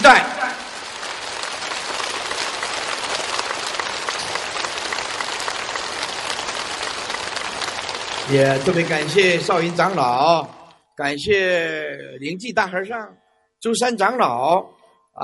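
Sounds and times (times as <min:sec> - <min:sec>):
loud sustained applause from a large crowd: 0:00.0 - 0:10.8
speech: 0:08.3 - 0:15.2.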